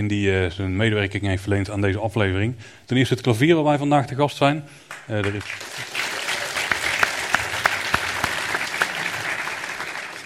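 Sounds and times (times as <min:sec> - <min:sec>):
speech: 0:00.0 - 0:06.0
audience applause: 0:04.9 - 0:10.2.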